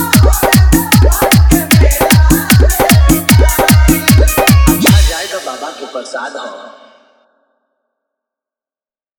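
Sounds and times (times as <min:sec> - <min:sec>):
dholak drum music mix: 0:00.0 - 0:06.2.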